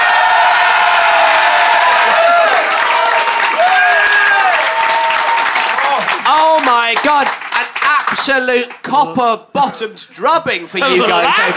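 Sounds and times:
audience applause: 0:00.0 - 0:08.8
speech: 0:07.0 - 0:07.4, 0:08.1 - 0:11.5
laughter: 0:10.5 - 0:11.5.

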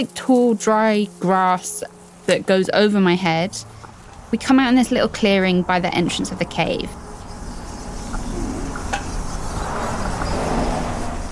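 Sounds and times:
speech: 0:00.0 - 0:07.0
cars whooshing past on a highway: 0:03.4 - 0:11.2.

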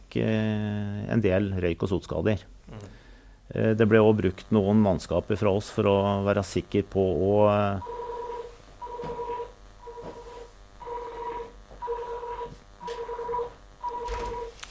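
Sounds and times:
speech: 0:00.1 - 0:02.8, 0:03.5 - 0:08.0
fire station alarm two-tone electronic beeps: 0:07.8 - 0:14.6.

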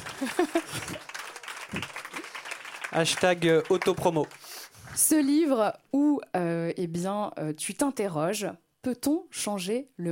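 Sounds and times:
laughter: 0:00.0 - 0:02.4
audience applause: 0:00.0 - 0:04.7
speech: 0:00.2 - 0:01.0, 0:03.0 - 0:04.4, 0:05.0 - 0:10.0.

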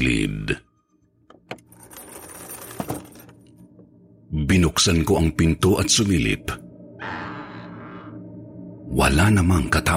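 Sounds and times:
chain being dragged scraping across floor: 0:01.7 - 0:03.3
speech: 0:04.5 - 0:06.6, 0:09.0 - 0:09.9.

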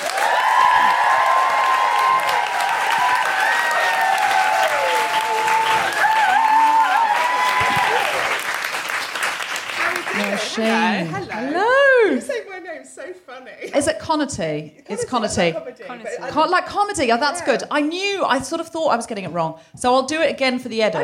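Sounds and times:
audience whooping and cheering for a guest comedian: 0:00.0 - 0:09.0
audience clapping at a live comedy show: 0:00.0 - 0:11.4
speech: 0:10.6 - 0:12.3, 0:13.4 - 0:21.0.

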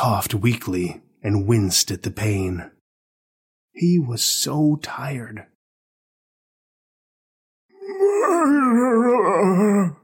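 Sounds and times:
speech: 0:00.0 - 0:02.8, 0:03.8 - 0:05.5, 0:08.0 - 0:10.0
moan from inside a bag: 0:07.7 - 0:10.0.

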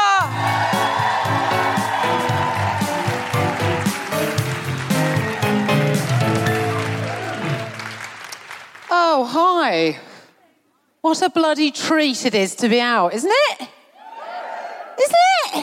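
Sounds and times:
music: 0:00.0 - 0:08.3
audience cheering and whooping at a live comedy show in Cambridge: 0:00.0 - 0:08.4, 0:14.0 - 0:15.0
audience applause at a live comedy show in Cambridge: 0:00.3 - 0:09.1
speech: 0:09.3 - 0:10.1, 0:11.0 - 0:13.8.

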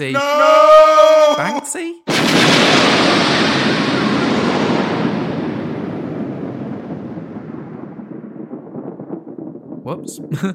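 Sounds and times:
speech: 0:00.0 - 0:00.6, 0:01.4 - 0:02.8, 0:09.9 - 0:10.5
comedy explosion sound effect: 0:02.1 - 0:10.5.

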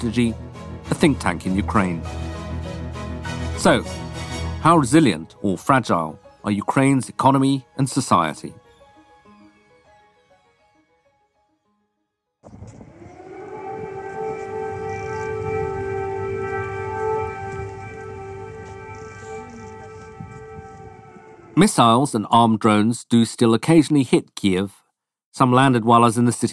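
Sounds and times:
speech: 0:00.0 - 0:02.3, 0:03.6 - 0:04.0, 0:04.6 - 0:08.6, 0:21.6 - 0:24.8, 0:25.4 - 0:26.5
air raid alarm siren: 0:00.0 - 0:04.6, 0:12.4 - 0:21.7.

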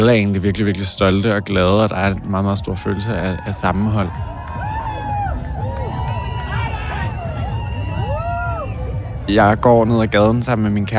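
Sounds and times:
speech: 0:00.0 - 0:04.3, 0:09.3 - 0:10.9
roar of crowd babble at a Pride march: 0:00.0 - 0:10.9.

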